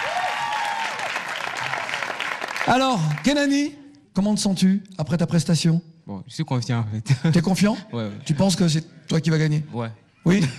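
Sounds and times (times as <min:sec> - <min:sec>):
audience applauding loudly: 0:00.0 - 0:03.6
speech: 0:02.6 - 0:10.5.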